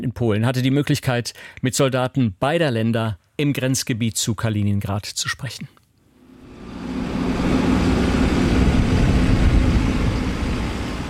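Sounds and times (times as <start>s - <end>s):
speech: 0.1s - 5.8s
tractor engine rolling over muddy ground: 6.5s - 11.0s.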